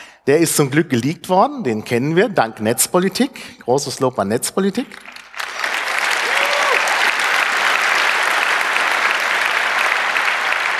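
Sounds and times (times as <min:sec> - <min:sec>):
speech: 0:00.3 - 0:05.2
audience applause: 0:05.0 - 0:10.7.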